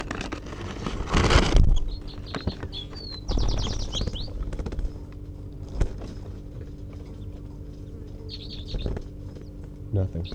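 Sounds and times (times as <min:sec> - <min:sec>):
released female bird giving a sharp toot call as she takes off: 0:01.1 - 0:10.3.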